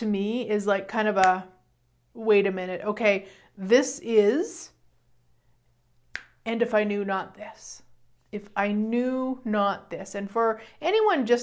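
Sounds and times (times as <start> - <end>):
speech: 0.0 - 1.5, 2.2 - 4.7, 6.4 - 11.4
finger snapping: 6.1 - 6.4.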